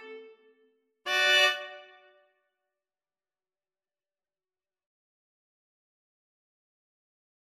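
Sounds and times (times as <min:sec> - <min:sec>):
viola duet: 0:01.1 - 0:01.9.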